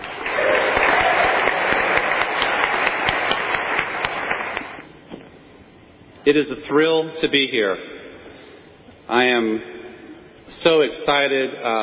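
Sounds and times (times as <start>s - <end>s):
audience applause: 0.0s - 4.8s
speech: 6.3s - 8.0s, 9.1s - 9.8s, 10.6s - 11.8s.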